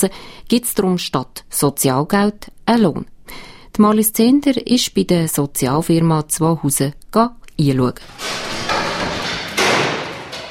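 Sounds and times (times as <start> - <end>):
speech: 0.0 - 8.6
clatter and work noise in a large workshop hall: 8.0 - 10.4
hammering in a large workshop hall recycling electronics: 8.0 - 10.4.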